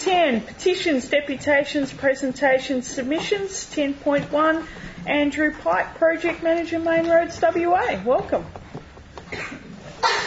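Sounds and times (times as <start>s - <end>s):
low murmur: 0.0s - 10.2s
speech: 0.1s - 8.6s
person sneezing: 9.3s - 10.2s.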